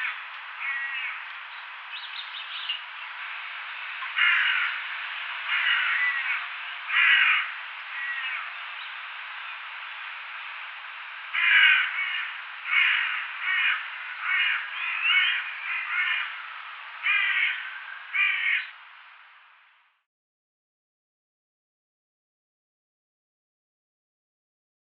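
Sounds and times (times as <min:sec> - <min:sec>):
crow cawing: 0:00.0 - 0:01.3, 0:04.0 - 0:08.6, 0:11.3 - 0:18.8.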